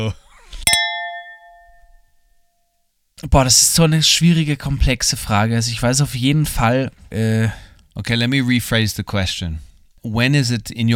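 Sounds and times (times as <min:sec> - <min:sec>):
speech: 0:00.0 - 0:00.2, 0:03.2 - 0:10.9
glass clinking: 0:00.7 - 0:02.0.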